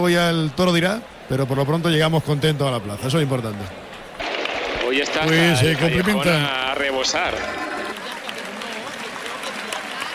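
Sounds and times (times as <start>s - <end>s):
speech: 0.0s - 3.8s, 4.9s - 7.7s
bullring crowd in Almería clapping for the bullfighters: 3.5s - 10.1s.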